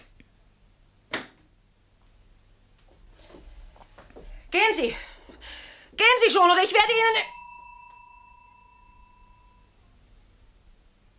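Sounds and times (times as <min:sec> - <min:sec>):
speech: 0:04.5 - 0:05.1, 0:06.0 - 0:07.4
small bell ringing: 0:06.7 - 0:09.8.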